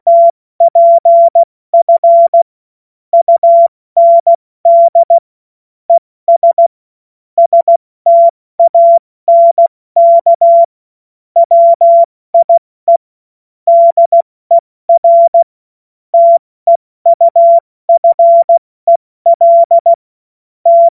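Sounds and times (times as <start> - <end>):
CW Morse code beeps: 0.0 - 2.4, 3.2 - 5.2, 6.3 - 6.7, 7.4 - 10.7, 11.4 - 13.0, 13.7 - 15.5, 16.2 - 20.0, 20.7 - 20.9.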